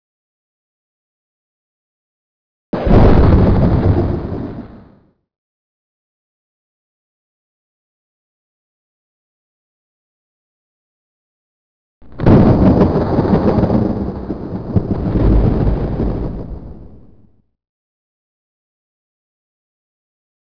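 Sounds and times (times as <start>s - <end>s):
thunder: 2.8s - 5.1s, 12.0s - 17.4s.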